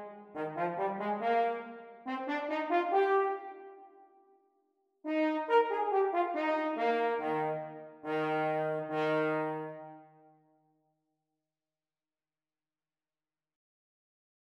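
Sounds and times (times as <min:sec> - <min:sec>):
French horn duet playalong practice: 0:00.0 - 0:03.7, 0:05.1 - 0:10.0.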